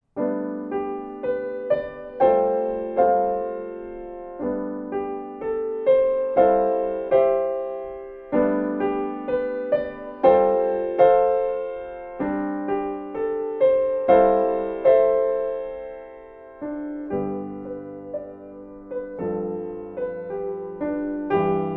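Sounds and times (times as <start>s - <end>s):
dreamy piano: 0.0s - 21.7s.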